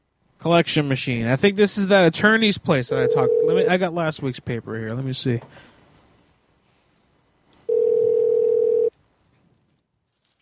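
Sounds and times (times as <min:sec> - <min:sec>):
speech: 0:00.4 - 0:05.7
telephone dial tone: 0:03.0 - 0:03.6, 0:07.7 - 0:08.9.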